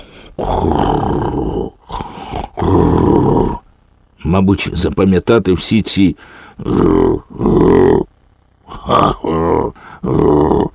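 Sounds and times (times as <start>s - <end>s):
voice imitating loud raspy snoring: 0.0s - 3.7s, 6.5s - 10.7s
speech: 0.4s - 1.6s, 4.3s - 8.1s, 8.7s - 10.7s.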